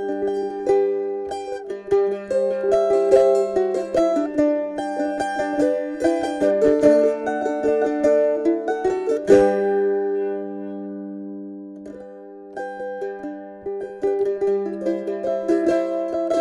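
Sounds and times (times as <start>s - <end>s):
two mandolins playing: 0.0s - 16.3s.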